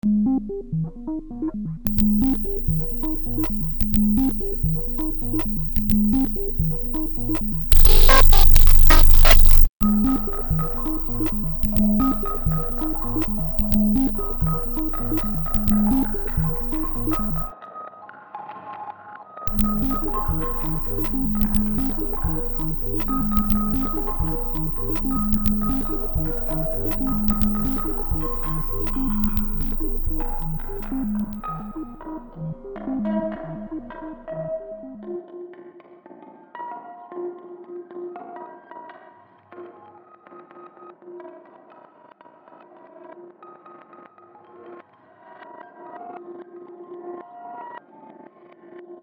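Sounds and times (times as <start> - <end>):
granular synthesis texture: 0.4 - 17.5, 19.5 - 34.4.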